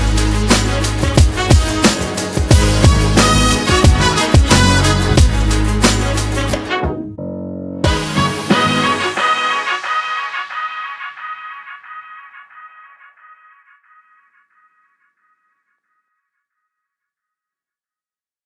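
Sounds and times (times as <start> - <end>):
hip hop action drum kit: 0.0 - 7.0, 7.9 - 10.7.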